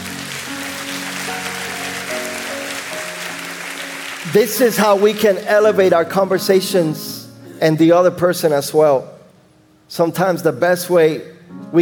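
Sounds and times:
applause: 0.0s - 5.5s
speech: 4.3s - 9.2s, 9.9s - 11.8s.

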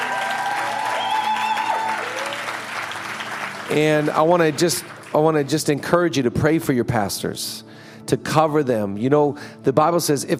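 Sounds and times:
audience applauding: 0.0s - 5.7s
speech: 3.7s - 10.3s.

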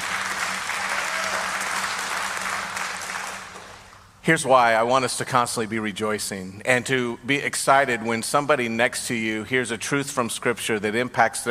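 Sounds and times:
audience applauding: 0.0s - 4.0s
speech: 4.2s - 11.4s.

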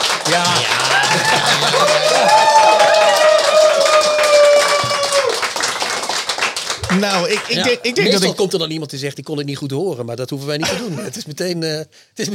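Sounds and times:
audience applauding: 0.0s - 8.3s
laughter: 0.3s - 3.3s, 10.6s - 11.2s
speech: 7.1s - 12.3s.

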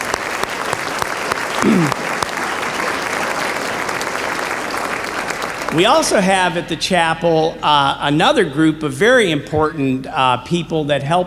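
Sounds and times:
audience applauding: 0.0s - 6.6s
speech: 1.6s - 2.0s, 5.8s - 11.2s.

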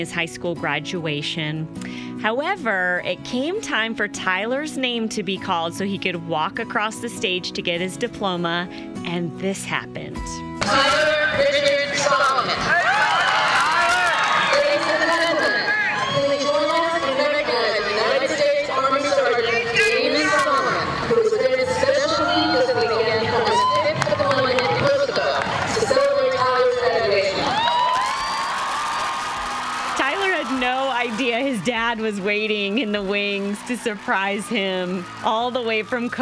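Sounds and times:
speech: 0.0s - 13.3s, 31.1s - 36.2s
graduation crowd cheering during a standing ovation: 10.6s - 36.2s.

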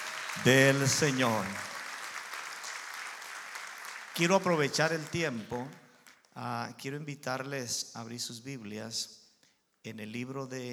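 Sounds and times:
crowd clapping: 0.0s - 6.2s
speech: 0.4s - 1.7s, 4.2s - 5.8s, 6.4s - 9.2s, 9.8s - 10.7s.

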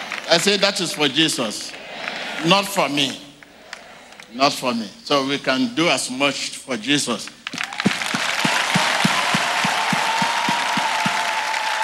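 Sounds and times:
audience clapping: 0.0s - 4.3s, 7.3s - 11.8s
speech: 0.3s - 1.8s, 2.4s - 3.2s, 4.3s - 7.4s.

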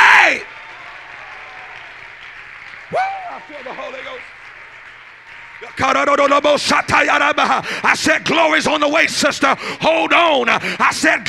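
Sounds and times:
audience clapping hands: 0.2s - 8.6s
speech: 3.5s - 4.4s, 5.7s - 11.2s.

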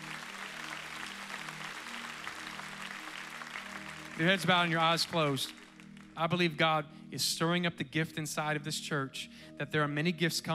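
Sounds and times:
room full of people clapping their hands: 0.0s - 6.3s
speech: 4.2s - 5.6s, 6.2s - 10.5s.

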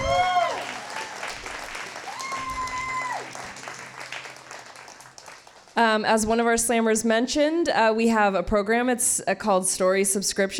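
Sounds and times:
audience applause: 0.0s - 5.8s
speech: 5.8s - 10.5s.

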